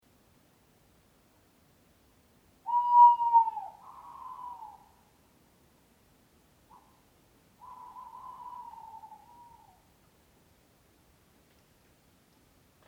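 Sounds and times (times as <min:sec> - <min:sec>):
owl hooting: 0:02.7 - 0:05.2, 0:07.6 - 0:09.9.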